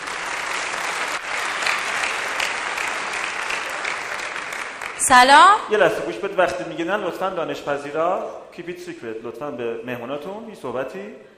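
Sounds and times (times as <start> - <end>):
audience applause: 0.0 - 5.2
speech: 5.1 - 11.3.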